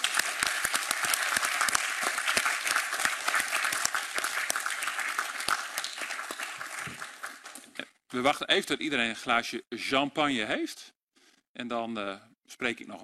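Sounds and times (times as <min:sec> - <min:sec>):
loud applause from attendees: 0:00.0 - 0:07.8
speech: 0:08.1 - 0:11.0, 0:11.6 - 0:13.0.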